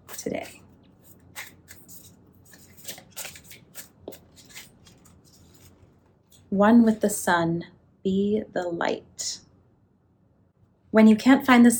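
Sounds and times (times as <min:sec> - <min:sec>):
oracle cards being shuffled: 0:00.0 - 0:06.4
speech: 0:06.5 - 0:09.4, 0:10.9 - 0:11.7.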